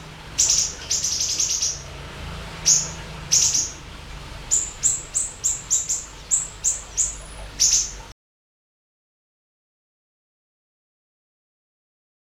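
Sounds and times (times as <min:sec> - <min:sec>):
Eurasian tree sparrow chirps: 0:00.0 - 0:08.1.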